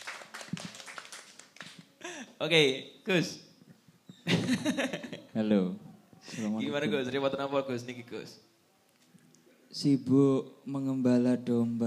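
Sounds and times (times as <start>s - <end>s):
crowd applauding: 0.0s - 1.8s
speech: 2.4s - 3.4s, 4.5s - 8.5s, 9.7s - 11.8s.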